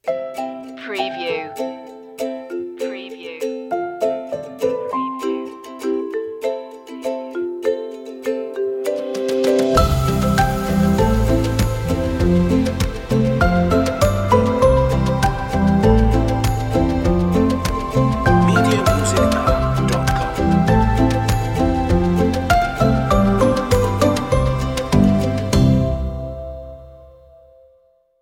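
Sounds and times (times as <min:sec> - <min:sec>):
ukulele playing: 0:00.0 - 0:27.0.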